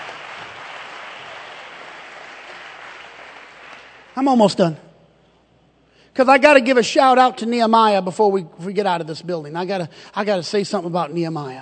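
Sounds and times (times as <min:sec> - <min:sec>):
audience clapping: 0:00.0 - 0:04.3
speech: 0:04.2 - 0:04.8, 0:06.2 - 0:11.6.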